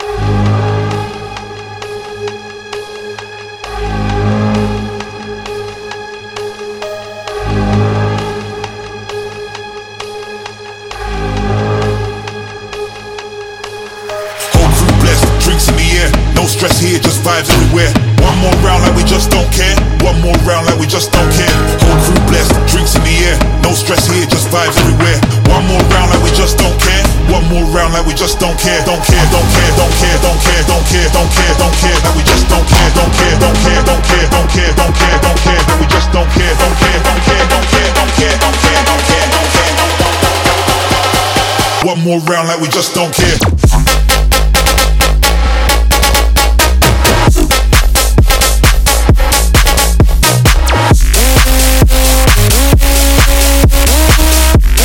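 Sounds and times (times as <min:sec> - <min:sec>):
construction kit full music mix: 0:00.0 - 0:54.8.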